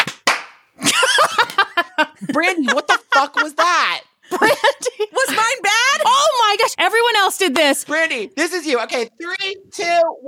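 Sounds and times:
group hand claps: 0:00.0 - 0:00.8, 0:01.4 - 0:01.7
voices talking and laughing: 0:00.8 - 0:08.2
speech: 0:02.2 - 0:10.2.

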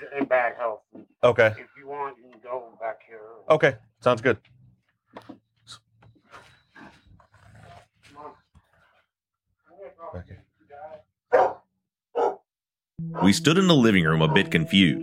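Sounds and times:
speech: 0:00.0 - 0:01.7, 0:03.5 - 0:04.5, 0:13.2 - 0:15.0
caged bulldog barking: 0:11.3 - 0:12.4, 0:14.2 - 0:14.5.

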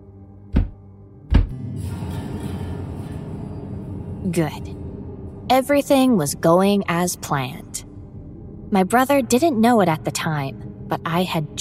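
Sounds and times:
dull heavy knocks with a deep low end: 0:00.6 - 0:01.6
speech: 0:04.2 - 0:04.8, 0:05.5 - 0:07.8, 0:08.7 - 0:11.5.

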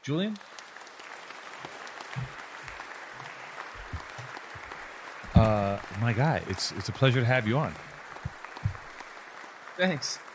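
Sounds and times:
speech: 0:00.0 - 0:00.6, 0:02.2 - 0:02.4, 0:05.4 - 0:07.9, 0:09.8 - 0:10.2
crowd applause sound effect: 0:00.0 - 0:10.3
low thumps: 0:03.8 - 0:04.3, 0:05.3 - 0:06.0, 0:07.8 - 0:09.0.

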